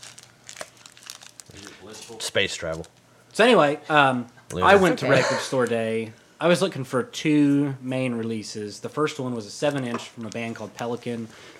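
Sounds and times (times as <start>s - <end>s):
Luna Blueberry Bliss snack bar wrapper crinkling: 0.0s - 3.0s, 10.2s - 11.2s
speech: 1.8s - 11.5s.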